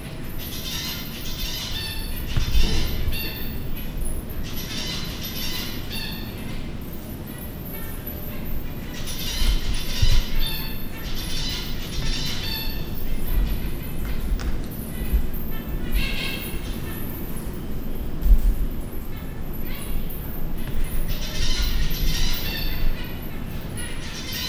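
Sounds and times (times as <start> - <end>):
captive zebra finch calls at a zoo: 0.2 - 6.7, 7.7 - 24.4.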